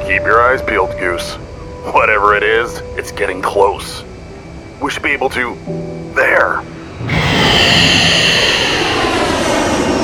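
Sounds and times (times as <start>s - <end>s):
speech: 0.1s - 4.1s, 4.8s - 8.2s
fighter jets flying past: 6.9s - 10.0s.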